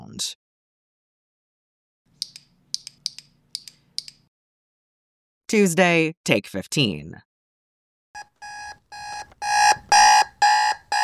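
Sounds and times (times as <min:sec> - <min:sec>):
speech: 0:00.2 - 0:00.4, 0:05.5 - 0:07.3
alarm clock ringing: 0:08.2 - 0:11.0.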